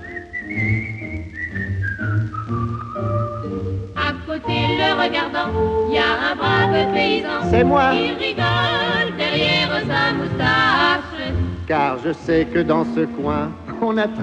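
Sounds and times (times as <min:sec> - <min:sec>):
fisherman at the water's edge whistling a melody: 0:00.0 - 0:03.6
instrumental accompaniment with a pulsing bass: 0:00.0 - 0:14.2
speech: 0:05.0 - 0:14.2.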